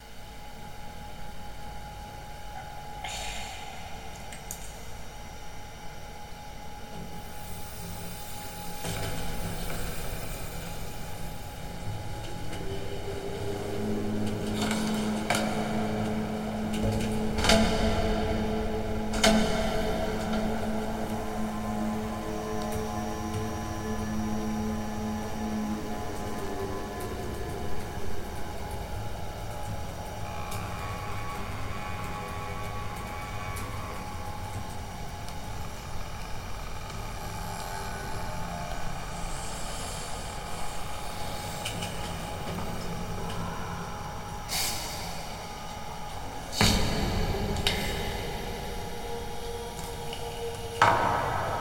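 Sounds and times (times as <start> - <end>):
factory hall and warehouse ambience: 0.0 - 51.5.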